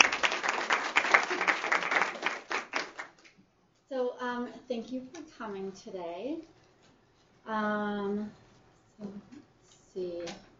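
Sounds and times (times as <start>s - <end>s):
audience applause welcoming a speaker to the stage: 0.0s - 3.2s
speech: 4.8s - 6.6s, 7.4s - 8.4s, 9.0s - 9.4s, 10.0s - 10.5s.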